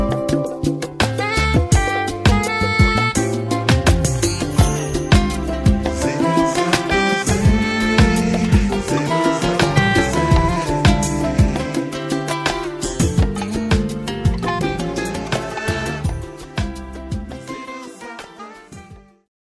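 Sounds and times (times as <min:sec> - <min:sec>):
smooth jazz music: 0:00.0 - 0:19.3.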